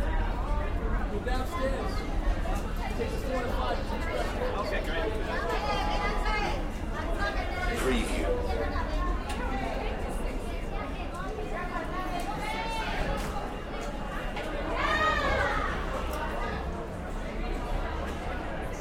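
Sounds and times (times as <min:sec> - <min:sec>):
dense crowd heavy chatter in Central Park NYC: 0:00.0 - 0:18.8.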